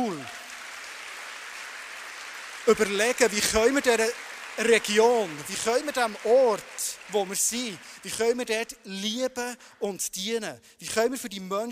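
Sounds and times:
speech: 0:00.0 - 0:00.4, 0:02.6 - 0:11.7
audience applause: 0:00.0 - 0:08.8.

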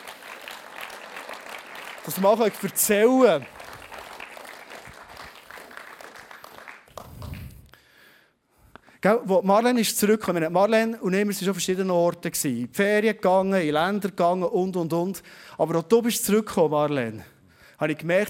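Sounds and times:
audience applause: 0:00.0 - 0:07.6
speech: 0:02.0 - 0:03.6, 0:09.0 - 0:18.2.

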